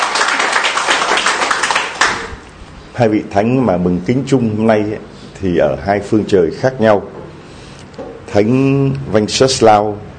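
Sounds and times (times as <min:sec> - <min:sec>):
gathering applauding at the feast of Saints Wenceslaus and Lorenzo Ruiz: 0:00.0 - 0:02.4
speech: 0:03.0 - 0:07.2, 0:08.3 - 0:10.1.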